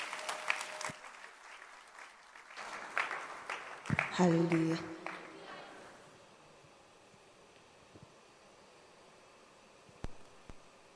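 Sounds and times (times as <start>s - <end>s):
audience clapping hands: 0.0s - 5.8s
speech: 4.2s - 5.0s.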